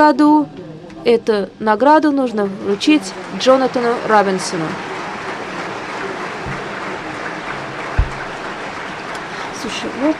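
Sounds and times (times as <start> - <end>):
speech: 0.0 - 4.9, 9.7 - 10.1
audience applause: 2.8 - 10.1.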